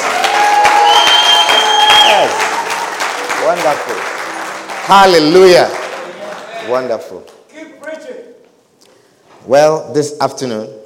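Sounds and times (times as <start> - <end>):
audience applauding: 0.0 - 7.2
speech: 3.5 - 4.1, 4.9 - 5.8, 6.6 - 8.2, 9.4 - 10.8.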